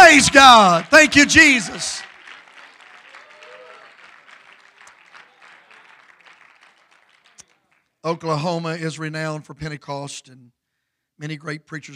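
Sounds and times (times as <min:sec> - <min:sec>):
audience hand clapping: 0:00.0 - 0:08.0
speech: 0:00.2 - 0:02.1, 0:08.0 - 0:10.6, 0:11.2 - 0:11.9.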